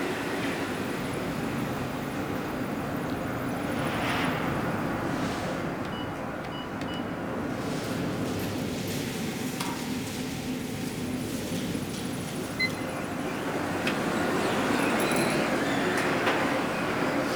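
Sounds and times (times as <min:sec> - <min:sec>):
large interior hub ambience: 0:00.2 - 0:17.2.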